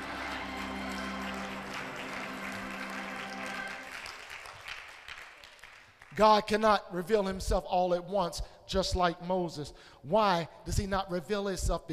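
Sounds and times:
audience clapping hands in the sanctuary: 0.0s - 6.4s
speech: 6.2s - 11.9s.

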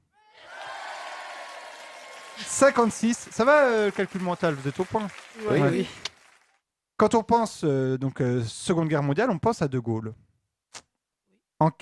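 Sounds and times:
applause: 0.4s - 6.6s
speech: 2.4s - 6.1s, 7.0s - 10.2s, 11.6s - 11.7s.

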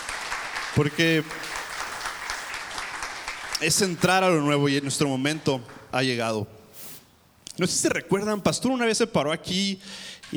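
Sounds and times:
audience applauding: 0.0s - 3.9s
speech: 0.7s - 1.5s, 3.6s - 6.6s, 7.6s - 10.3s.

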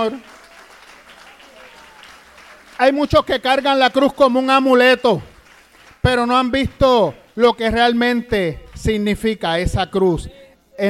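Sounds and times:
speech: 0.0s - 0.4s, 2.8s - 5.3s, 6.0s - 10.8s
audience applauding: 0.0s - 4.0s, 5.0s - 6.4s.

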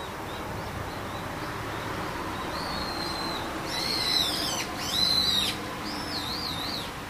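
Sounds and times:
bird calling with high wavering whistled notes: 0.0s - 7.0s.

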